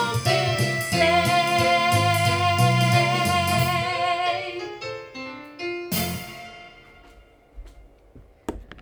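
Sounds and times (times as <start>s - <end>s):
person singing: 0.0s - 5.0s.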